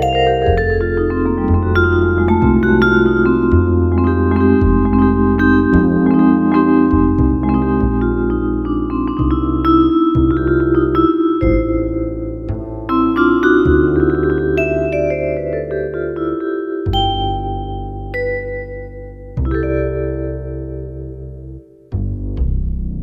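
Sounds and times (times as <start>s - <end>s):
vibes on a Korg N364: 0.0s - 21.3s
bass on a Korg N364: 0.0s - 23.0s.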